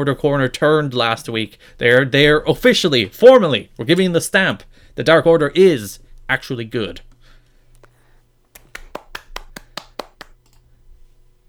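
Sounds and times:
speech: 0:00.0 - 0:07.1
round of applause: 0:08.6 - 0:10.4.

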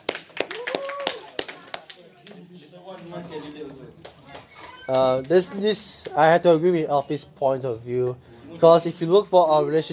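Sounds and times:
applause for a speaker: 0:00.0 - 0:02.4
speech: 0:04.9 - 0:09.9.

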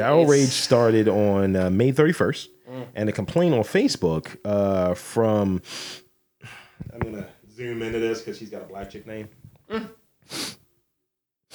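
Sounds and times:
speech: 0:00.0 - 0:10.6
smug sniffs: 0:05.6 - 0:06.9, 0:10.3 - 0:10.6.

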